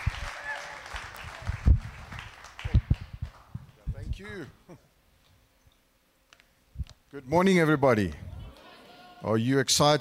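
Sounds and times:
audience applause: 0.0 - 3.5
speech: 4.2 - 4.9, 7.1 - 8.2, 9.2 - 9.9.

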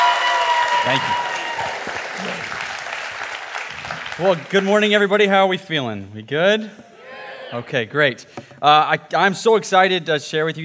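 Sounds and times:
church congregation applauding to welcome the pastor: 0.0 - 5.0
speech: 0.9 - 1.3, 4.2 - 6.9, 7.5 - 10.6.

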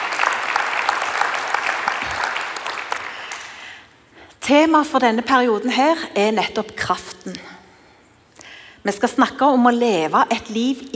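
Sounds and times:
audience applause: 0.0 - 3.7
speech: 4.5 - 7.5, 8.8 - 10.9.

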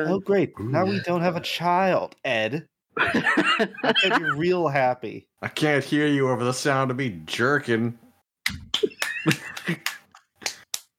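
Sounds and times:
speech: 0.0 - 10.0
laughter: 3.0 - 4.5, 8.8 - 10.1
hand claps: 8.5 - 10.9.

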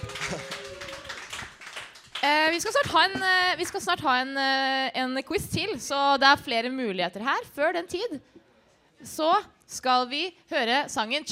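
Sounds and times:
audience applause: 0.0 - 2.3
speech: 2.2 - 8.4, 9.0 - 11.3.

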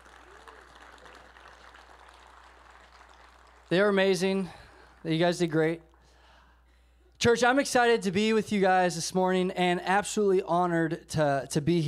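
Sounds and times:
audience round of applause: 0.0 - 6.0
speech: 3.7 - 5.9, 7.2 - 11.8.

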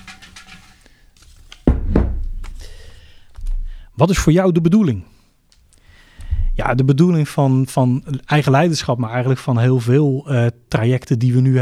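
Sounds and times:
jar being shaken: 0.0 - 1.6
speech: 4.0 - 5.2, 6.7 - 11.6.

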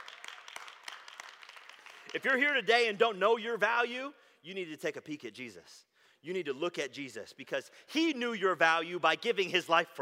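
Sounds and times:
audience clapping: 0.0 - 3.0
speech: 2.1 - 10.0.

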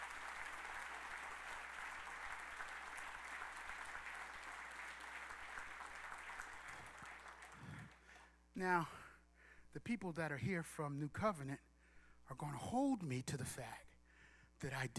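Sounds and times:
audience clapping: 0.0 - 8.2
speech: 8.6 - 9.0, 9.7 - 11.7, 12.3 - 13.9, 14.6 - 14.9.

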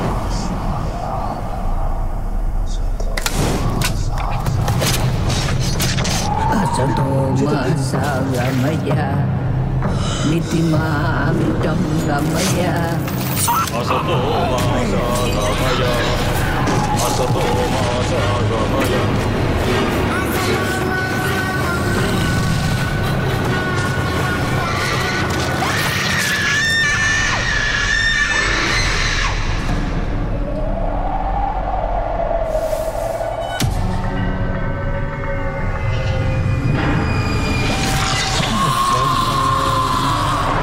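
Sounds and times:
eerie horror film sounds: 0.0 - 40.6
speech: 7.4 - 16.3, 17.0 - 19.3
shrill screams: 23.8 - 29.7, 37.0 - 40.6.

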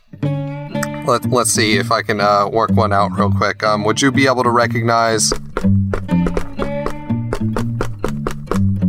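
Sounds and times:
speech: 1.0 - 5.8
secret knock on a thick door: 5.3 - 8.6.

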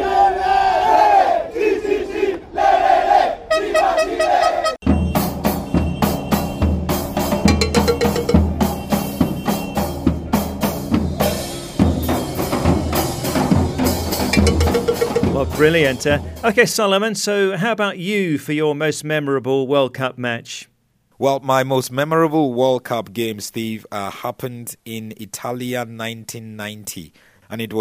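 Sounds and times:
Chile football fans chanting at a World Cup match in Rio: 0.0 - 4.8
rhythmic beats: 4.8 - 11.3, 12.0 - 16.5
speech: 15.6 - 27.7.

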